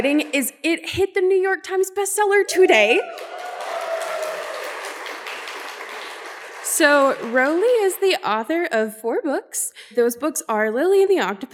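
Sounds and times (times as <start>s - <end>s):
speech: 0.0s - 3.6s, 6.7s - 11.5s
crowd clapping: 2.5s - 8.2s.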